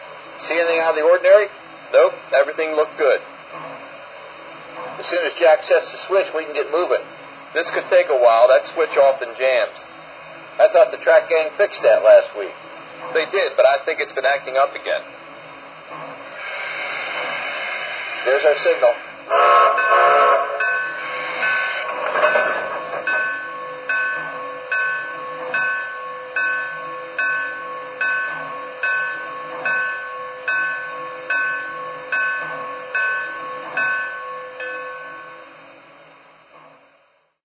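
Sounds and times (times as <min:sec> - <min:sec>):
trains: 0:00.0 - 0:37.4.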